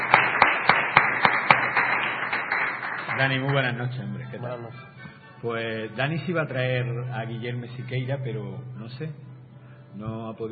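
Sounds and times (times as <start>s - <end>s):
audience applause for a guest on a show: 0.0s - 5.2s
speech: 3.2s - 9.3s, 10.0s - 10.5s.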